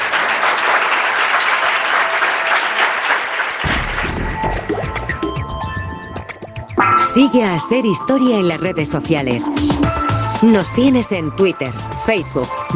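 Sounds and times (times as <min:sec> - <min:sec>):
audience applause: 0:00.0 - 0:05.3
speech: 0:07.1 - 0:12.7.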